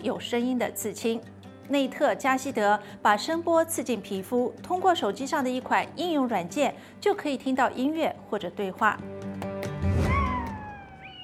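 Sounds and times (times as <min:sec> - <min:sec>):
speech: 0:00.0 - 0:09.2
dog howling like a wolf: 0:10.0 - 0:11.2.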